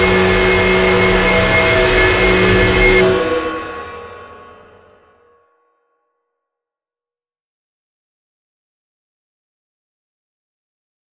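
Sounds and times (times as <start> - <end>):
metal riser: 0.0 - 4.3.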